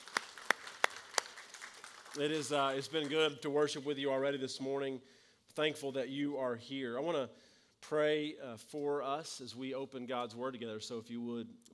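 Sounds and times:
audience applause: 0.0s - 3.2s
speech: 2.2s - 11.7s.

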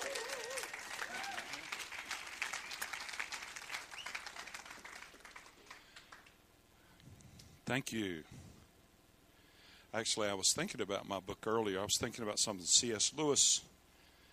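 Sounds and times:
cheering whoops: 0.0s - 4.6s
audience applause welcoming a guest onto the stage: 0.0s - 6.4s
speech: 7.7s - 8.5s, 10.0s - 13.7s.

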